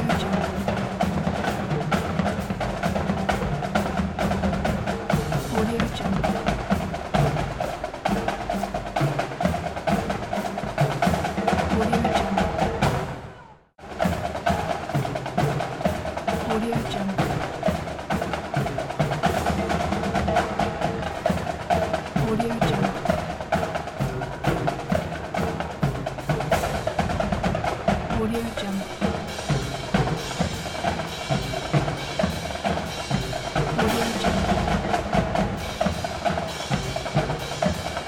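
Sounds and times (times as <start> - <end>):
human sounds at a marching band parade: 0.0 - 38.0
marching band playing in a parade: 0.0 - 38.0.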